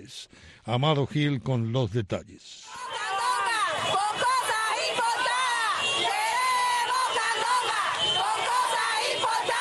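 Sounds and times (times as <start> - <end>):
speech: 0.1 - 2.9, 3.8 - 5.1
protest crowd shouting: 2.6 - 9.5.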